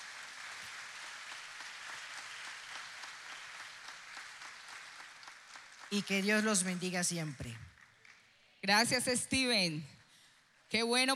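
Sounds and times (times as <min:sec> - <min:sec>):
audience applause: 0:00.0 - 0:08.8
speech: 0:05.9 - 0:07.7, 0:08.7 - 0:10.0, 0:10.7 - 0:11.1.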